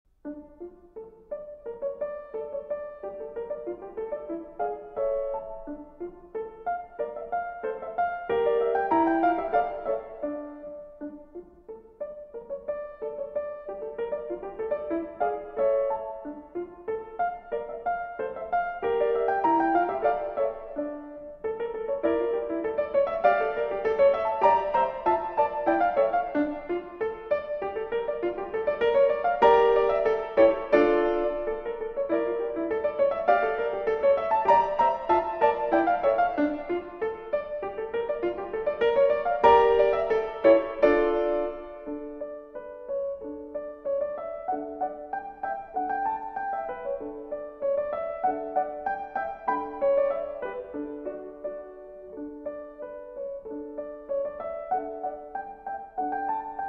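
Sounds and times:
gavotte: 0.2s - 56.6s.

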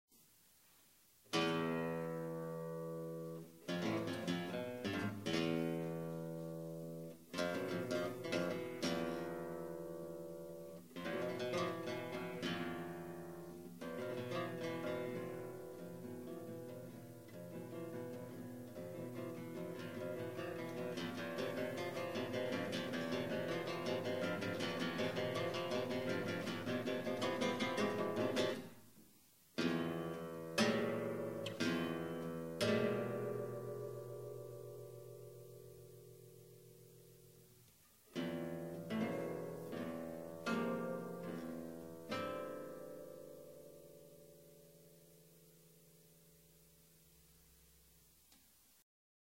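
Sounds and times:
guitar suite: 1.3s - 28.8s, 29.6s - 46.4s.

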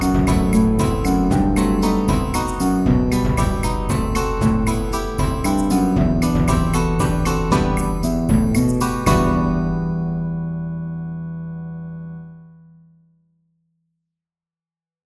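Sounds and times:
percussion: 0.0s - 9.9s
guitar quartet: 0.0s - 10.6s.

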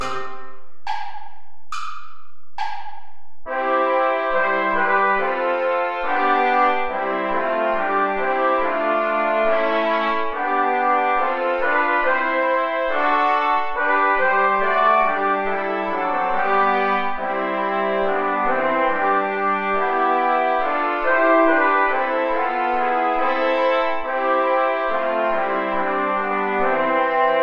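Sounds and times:
play-along backing music without trombone: 0.0s - 27.4s.

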